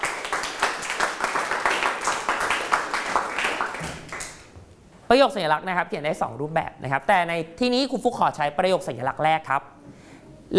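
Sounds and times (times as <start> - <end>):
applause: 0.0 - 4.5
speech: 5.1 - 9.8.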